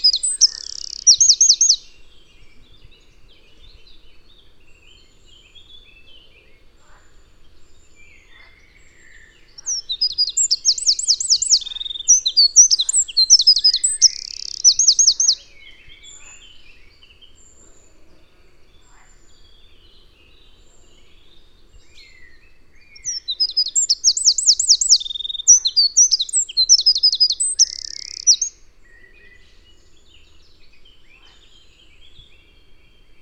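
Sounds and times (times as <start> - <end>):
Eurasian wren singing: 0.0 - 7.0, 7.6 - 33.1.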